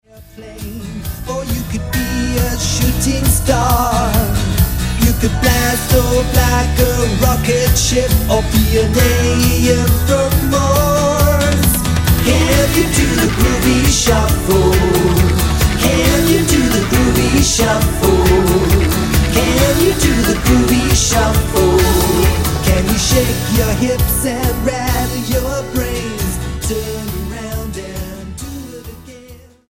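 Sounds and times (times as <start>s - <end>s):
groovy shuffle music: 0.2s - 29.2s.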